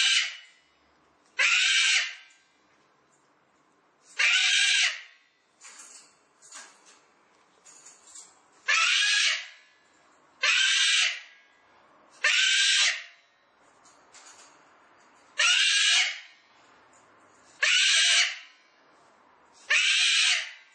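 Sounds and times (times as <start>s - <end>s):
cockatoo raspy drawn-out screeches: 0.0s - 0.5s, 1.4s - 2.3s, 4.2s - 5.1s, 8.6s - 9.6s, 10.4s - 11.3s, 12.2s - 13.2s, 15.4s - 16.3s, 17.6s - 18.5s, 19.6s - 20.7s.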